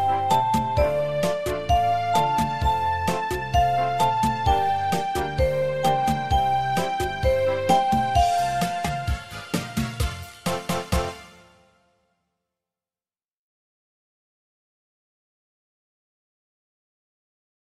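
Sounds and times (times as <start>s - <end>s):
music beat: 0.0s - 11.4s.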